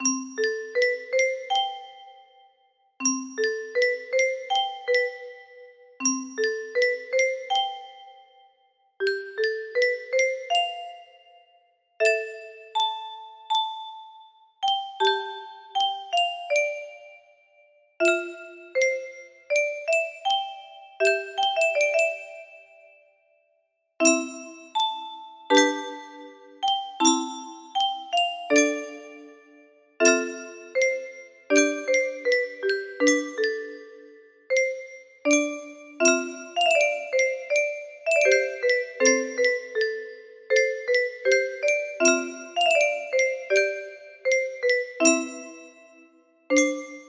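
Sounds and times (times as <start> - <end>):
music box lullaby: 0.0 - 23.3, 24.0 - 47.0.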